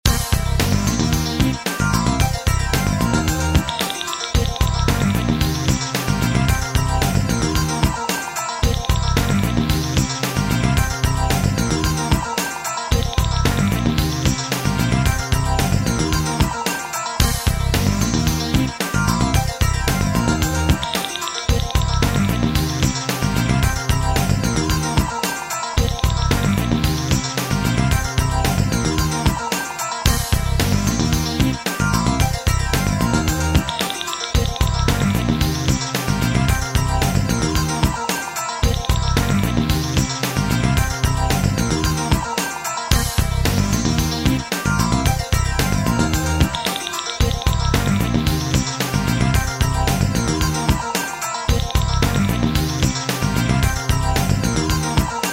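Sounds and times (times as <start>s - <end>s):
corporate music: 0.0s - 55.3s.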